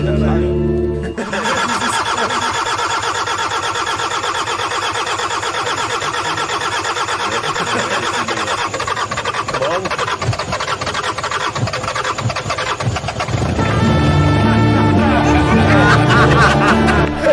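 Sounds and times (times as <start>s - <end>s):
old car engine starting: 0.0s - 17.3s
laughter: 0.9s - 17.3s.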